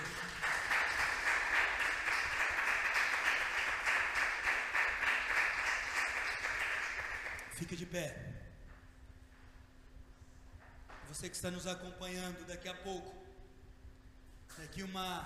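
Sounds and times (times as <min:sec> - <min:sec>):
audience applause: 0:00.0 - 0:07.5
speech: 0:07.7 - 0:08.5, 0:11.1 - 0:13.2, 0:14.6 - 0:15.2.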